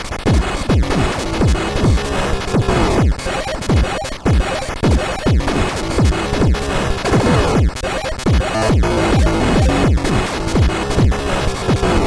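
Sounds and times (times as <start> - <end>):
chiptune battle challenge music: 0.3 - 12.0.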